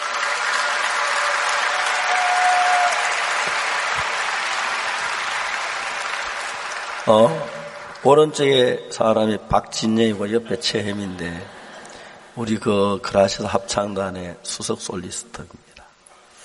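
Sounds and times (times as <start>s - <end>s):
sustained applause from a large audience: 0.0s - 8.6s
speech: 7.1s - 7.4s, 8.0s - 11.6s, 12.4s - 15.7s.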